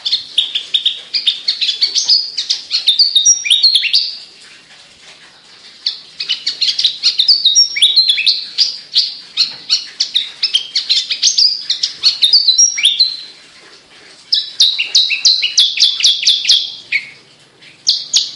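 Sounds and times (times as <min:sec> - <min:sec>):
Javan bush lark singing: 0:00.0 - 0:04.2, 0:06.2 - 0:13.3, 0:14.3 - 0:17.2.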